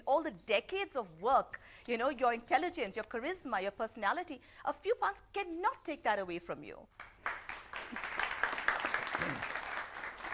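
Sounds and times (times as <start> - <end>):
speech: 0.1 - 7.1
television talk-show studio audience applauding: 7.0 - 10.3.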